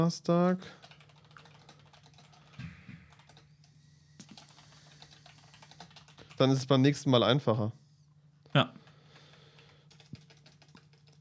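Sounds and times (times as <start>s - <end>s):
speech: 0.0s - 0.9s, 6.4s - 7.8s, 8.5s - 8.8s
typing notes on a computer keyboard: 0.7s - 6.7s, 8.8s - 11.1s.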